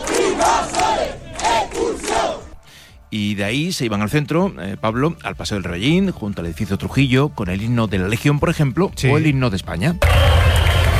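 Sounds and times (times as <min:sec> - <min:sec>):
protest crowd shouting slogans in unison: 0:00.0 - 0:02.6
speech: 0:03.1 - 0:10.4.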